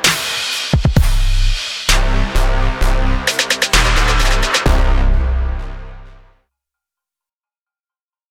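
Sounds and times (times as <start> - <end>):
upbeat anthemic trap music: 0.0 - 6.3.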